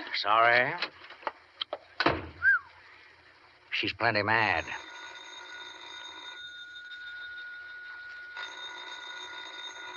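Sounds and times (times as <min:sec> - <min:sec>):
speech: 0:00.1 - 0:01.0, 0:03.8 - 0:04.9
telephone bell ringing: 0:04.4 - 0:09.9.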